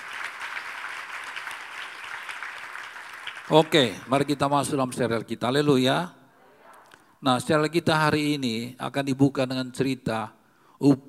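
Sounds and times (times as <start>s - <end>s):
audience applause: 0.0s - 4.7s
speech: 3.5s - 6.2s, 7.2s - 11.0s.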